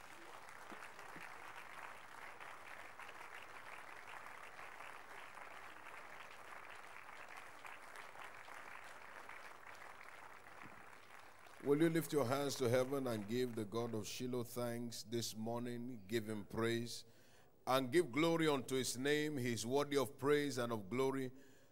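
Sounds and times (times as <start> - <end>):
audience applause: 0.0 - 14.0
speech: 11.6 - 21.5.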